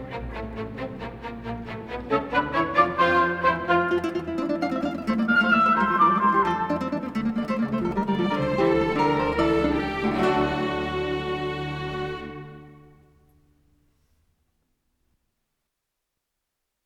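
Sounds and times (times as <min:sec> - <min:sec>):
orchestra playing: 0:00.0 - 0:13.2
two guitars: 0:02.2 - 0:13.4.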